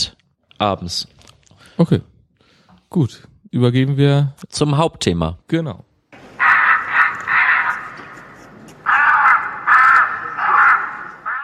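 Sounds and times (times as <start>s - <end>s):
speech: 0.6s - 1.2s, 1.8s - 2.1s, 2.9s - 5.9s
crow calls from crow deterrent system at the Bismarckschule: 6.2s - 11.4s.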